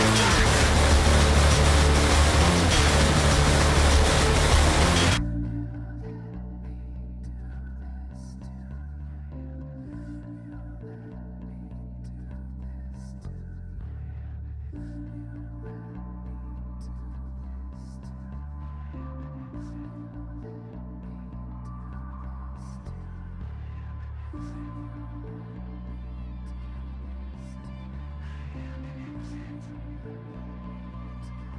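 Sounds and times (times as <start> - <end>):
industrial sound: 0.0 - 5.2.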